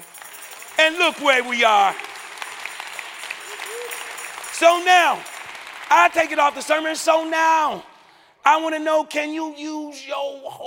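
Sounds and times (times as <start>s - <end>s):
audience applauding: 0.0s - 7.8s
speech: 0.8s - 2.0s, 4.6s - 5.3s, 5.9s - 10.6s.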